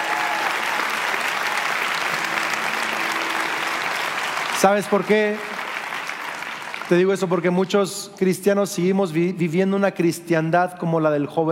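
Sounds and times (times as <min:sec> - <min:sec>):
audience clapping: 0:00.0 - 0:08.4
speech: 0:04.6 - 0:05.5, 0:06.9 - 0:11.5.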